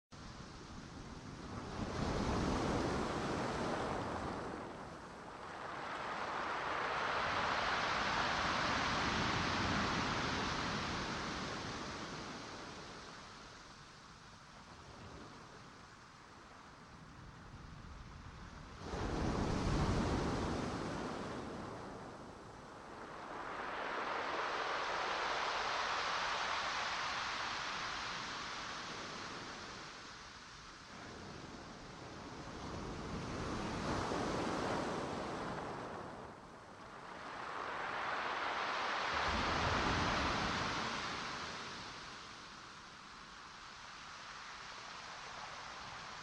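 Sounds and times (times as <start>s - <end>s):
ocean: 0.2s - 46.2s.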